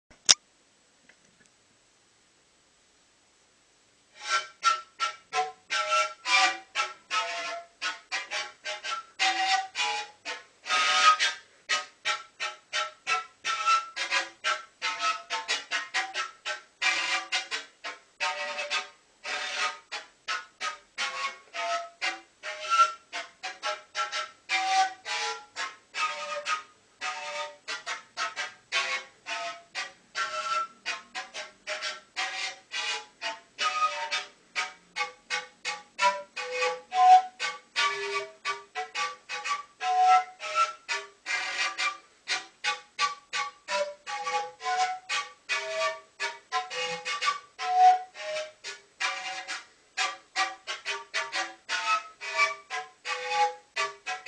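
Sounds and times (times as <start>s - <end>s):
siku panpipe huayno music: 4.2s - 54.2s.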